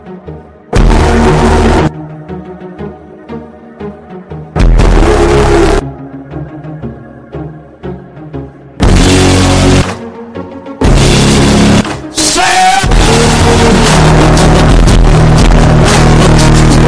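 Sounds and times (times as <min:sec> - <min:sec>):
distortion effect: 0:00.7 - 0:01.9, 0:04.6 - 0:05.8, 0:08.8 - 0:10.0, 0:10.8 - 0:16.8.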